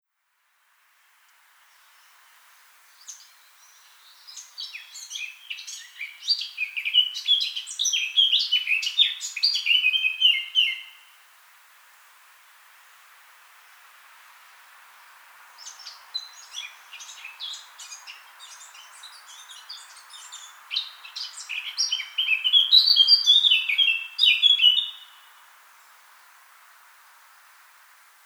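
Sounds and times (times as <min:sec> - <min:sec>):
Eurasian blackcap song: 0:02.9 - 0:11.1, 0:15.6 - 0:25.3.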